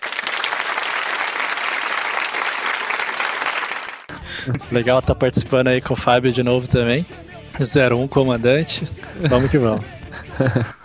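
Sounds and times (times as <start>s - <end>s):
cheering crowd and applause: 0.0s - 4.1s
laughter: 4.1s - 5.2s, 8.6s - 10.8s
speech: 4.3s - 10.8s.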